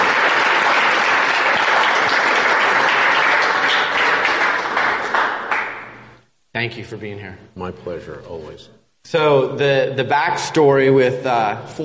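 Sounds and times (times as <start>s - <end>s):
studio audience applause: 0.0s - 6.1s
speech: 6.6s - 11.8s.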